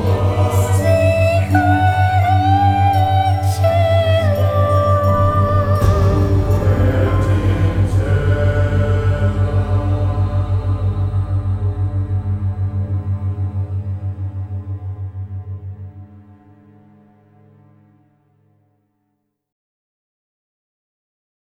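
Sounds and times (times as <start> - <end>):
Gregorian chant: 0.0 - 15.7.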